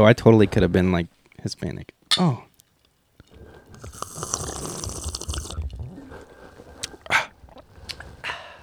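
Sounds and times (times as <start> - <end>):
speech: 0.0 - 2.5
person gulping a drink: 3.2 - 8.2.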